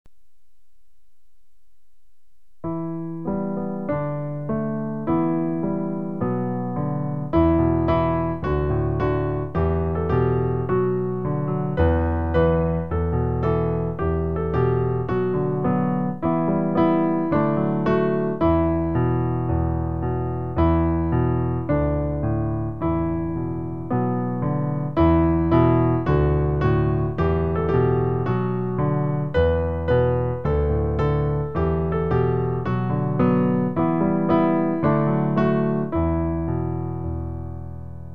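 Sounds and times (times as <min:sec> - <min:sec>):
piano: 0:00.1 - 0:38.1.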